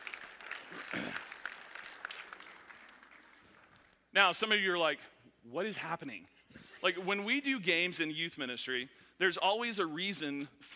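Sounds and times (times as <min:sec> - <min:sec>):
audience applause: 0:00.0 - 0:03.7
speech: 0:04.2 - 0:10.7.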